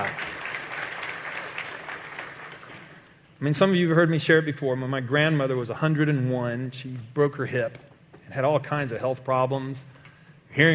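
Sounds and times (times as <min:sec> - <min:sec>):
audience applause: 0:00.0 - 0:03.1
speech: 0:03.4 - 0:10.7.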